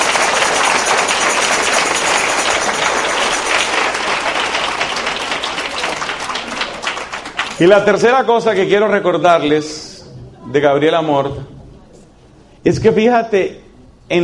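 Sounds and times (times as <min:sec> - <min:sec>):
audience applause: 0:00.0 - 0:08.2
speech: 0:07.6 - 0:09.9, 0:10.5 - 0:11.5, 0:12.6 - 0:14.2.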